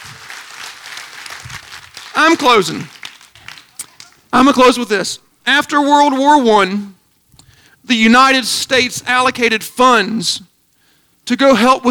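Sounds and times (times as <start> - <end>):
audience clapping: 0.0 - 4.4
speech: 2.2 - 3.0, 4.4 - 7.0, 7.9 - 10.5, 11.3 - 11.8.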